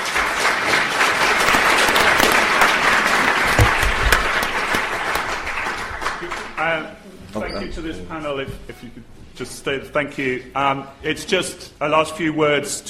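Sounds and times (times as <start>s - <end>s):
crowd applauding: 0.0s - 6.8s
speech: 7.6s - 12.8s.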